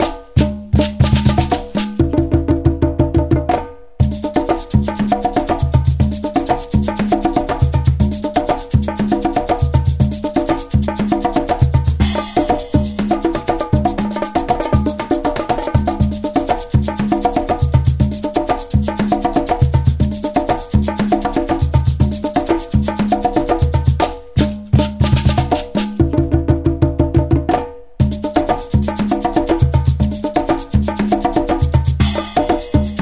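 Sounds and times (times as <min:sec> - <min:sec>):
joyful tam-tam: 0:00.0 - 0:33.0.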